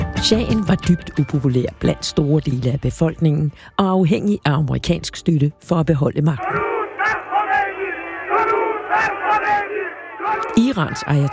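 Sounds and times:
speech: 0:00.2 - 0:06.7, 0:10.6 - 0:11.3
crowd welcoming Ayatollah Khomeini at Tehran airport in 1979, shouting and cheering: 0:06.4 - 0:11.3.

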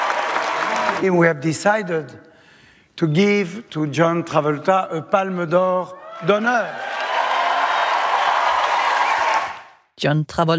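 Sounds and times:
standing ovation crowd applause for an actor at the Cannes Film Festival: 0:00.0 - 0:01.1, 0:06.0 - 0:09.8
speech: 0:01.0 - 0:02.3, 0:03.0 - 0:06.9, 0:10.0 - 0:10.5.

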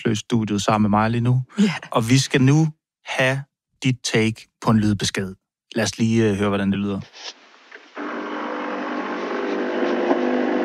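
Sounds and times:
speech: 0:00.0 - 0:07.4
coffee machine brewing: 0:08.0 - 0:10.6.

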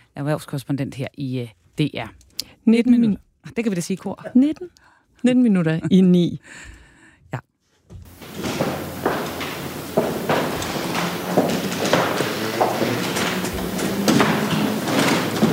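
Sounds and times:
speech: 0:00.2 - 0:07.5
shuffling and soft thuds: 0:07.8 - 0:15.5
shoes on the palace floor in Oslo as a royal coffin is carried: 0:07.9 - 0:15.5.

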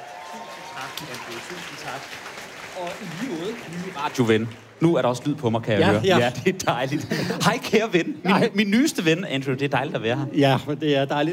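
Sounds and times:
audience applause: 0:00.0 - 0:05.6
speech: 0:00.8 - 0:11.3.

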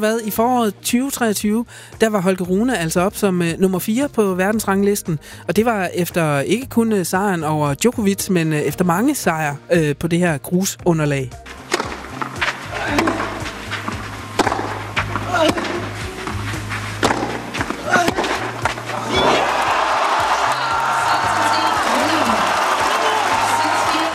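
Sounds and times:
speech: 0:00.0 - 0:11.8
tennis match sounds: 0:11.3 - 0:24.1
crowd outburst: 0:17.8 - 0:24.1.

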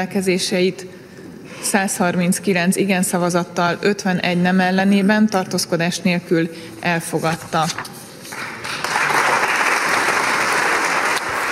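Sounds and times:
speech: 0:00.0 - 0:08.0
applause in the Hungarian parliament after vote repealing anti-LGBTQ+ legislation: 0:08.3 - 0:11.5.

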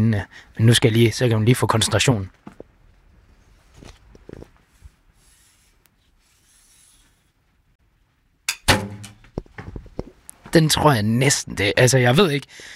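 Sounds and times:
speech: 0:00.0 - 0:02.5, 0:10.5 - 0:12.7
soft rustling: 0:02.3 - 0:07.8
arrow from an advanced bow with sights hitting the target: 0:08.5 - 0:09.4.

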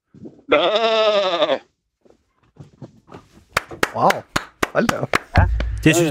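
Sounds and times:
person imitating a sheep bleating: 0:00.5 - 0:01.6
speech: 0:00.5 - 0:01.6, 0:04.0 - 0:05.1, 0:05.8 - 0:06.0.

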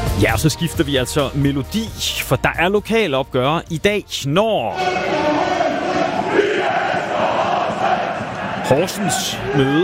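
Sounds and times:
speech: 0:00.2 - 0:05.6, 0:08.7 - 0:09.8
football supporters chanting at a derby: 0:04.8 - 0:09.8.

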